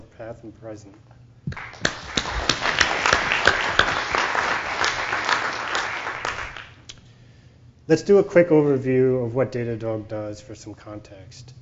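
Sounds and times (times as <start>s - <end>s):
speech: 0.2s - 2.8s, 7.9s - 11.6s
audience applause: 1.5s - 6.8s.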